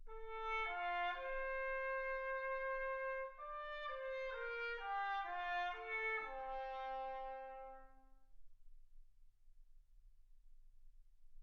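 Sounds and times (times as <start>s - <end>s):
trumpet: 0.0s - 8.1s.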